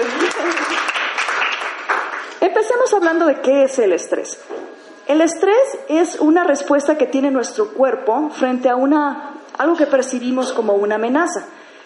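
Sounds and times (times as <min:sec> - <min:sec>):
audience applause: 0:00.0 - 0:02.4
speech: 0:02.5 - 0:11.6.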